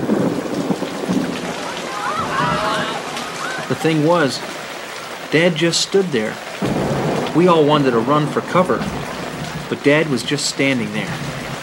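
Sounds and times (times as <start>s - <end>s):
thunder: 0.0s - 3.0s, 6.6s - 11.6s
heavy rain pouring: 0.0s - 11.6s
speech: 3.7s - 4.6s, 5.3s - 6.7s, 7.4s - 9.1s, 9.7s - 11.4s.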